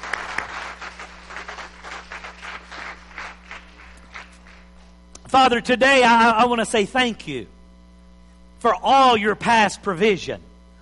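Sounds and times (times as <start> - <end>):
audience clapping: 0.0 - 4.9
speech: 5.3 - 7.6, 8.6 - 10.5.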